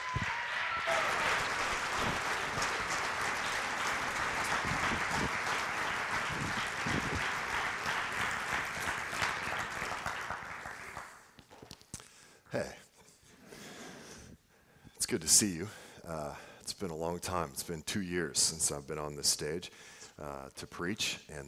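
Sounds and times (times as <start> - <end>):
audience applause at a church service welcoming a returning preacher: 0.0 - 11.2
speech: 15.2 - 21.4.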